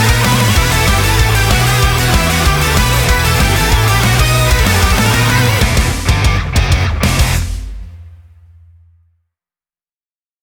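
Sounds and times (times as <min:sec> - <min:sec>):
instrumental music: 0:00.0 - 0:08.3.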